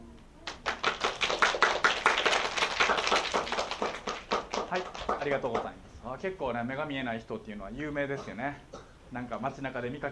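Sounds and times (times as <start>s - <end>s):
audience clapping hands: 0.4s - 5.7s
speech: 5.2s - 10.1s.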